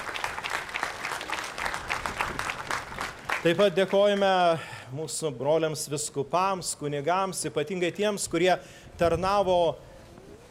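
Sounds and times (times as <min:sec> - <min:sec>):
church congregation applause for the choir of the Utena Divine Providence parish: 0:00.0 - 0:04.5
speech: 0:03.4 - 0:09.9.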